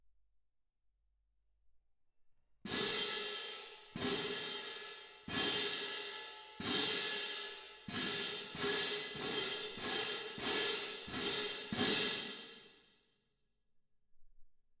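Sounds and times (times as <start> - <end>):
percussion: 2.7 - 12.9.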